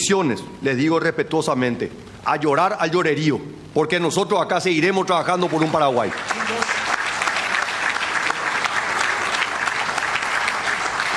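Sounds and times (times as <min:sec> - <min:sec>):
speech: 0:00.0 - 0:06.4
audience applause: 0:05.1 - 0:11.1.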